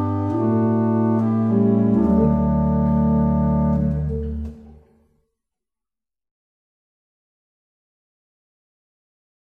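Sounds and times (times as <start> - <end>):
barrel organs: 0.0 - 4.7.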